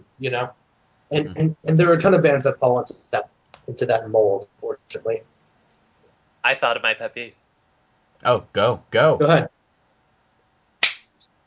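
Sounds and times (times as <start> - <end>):
speech: 0.2 - 5.3, 6.4 - 7.4, 8.2 - 9.5
hand clap: 10.8 - 11.2.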